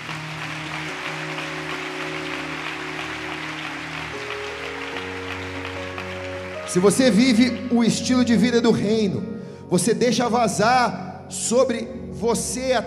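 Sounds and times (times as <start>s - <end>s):
audience applause: 0.0s - 8.1s
sustained keyboard chords: 0.0s - 12.8s
speech: 6.7s - 12.8s.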